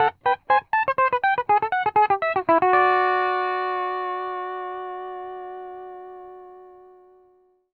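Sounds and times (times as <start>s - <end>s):
country music loop at 120 BPM: 0.0s - 3.7s.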